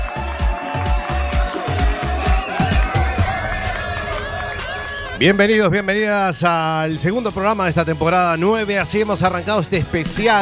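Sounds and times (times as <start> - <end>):
audience applauding and cheering: 0.0 - 5.9
rhythmic pounding beat: 0.0 - 8.0
speech: 5.2 - 10.3.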